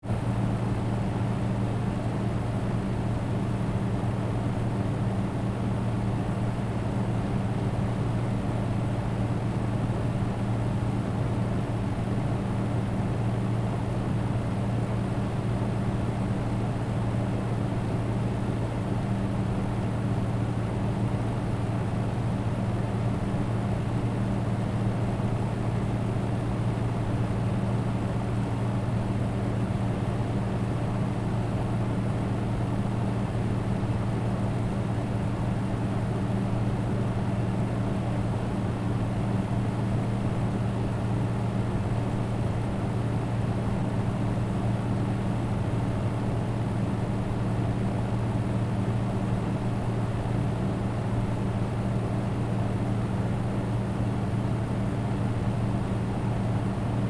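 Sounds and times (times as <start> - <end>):
external air conditioner running: 0.1 - 57.0.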